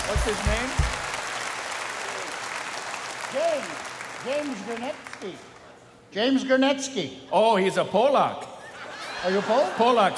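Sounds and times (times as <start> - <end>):
audience applause: 0.0 - 5.7
speech: 0.2 - 0.9, 3.3 - 5.5, 6.1 - 8.5, 9.2 - 10.1
laughter: 8.5 - 10.1.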